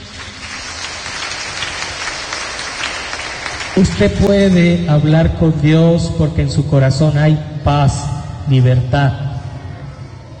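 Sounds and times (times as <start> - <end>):
crowd clapping hands: 0.0 - 4.9
speech: 3.8 - 9.3.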